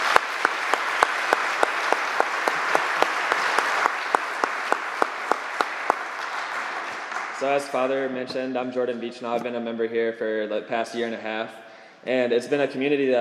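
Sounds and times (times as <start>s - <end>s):
audience applause: 0.0s - 7.8s
speech: 7.4s - 13.1s.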